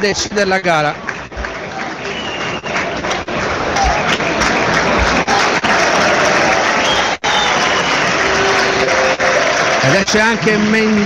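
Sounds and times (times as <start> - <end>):
speech: 0.0 - 1.1, 9.9 - 11.0
stadium crowd applauding: 0.0 - 11.0.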